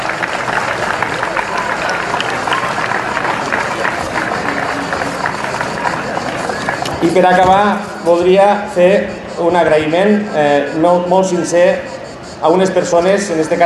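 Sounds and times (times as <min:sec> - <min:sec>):
audience applause: 0:00.0 - 0:07.8
speech: 0:07.0 - 0:13.6.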